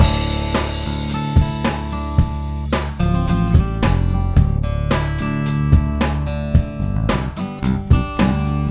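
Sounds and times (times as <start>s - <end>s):
music: 0.0s - 8.6s.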